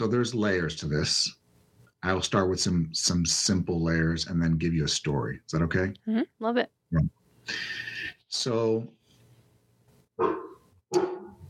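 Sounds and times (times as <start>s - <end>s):
speech: 0.0s - 1.4s, 2.0s - 9.0s, 10.2s - 11.1s
dog barking: 10.2s - 11.4s.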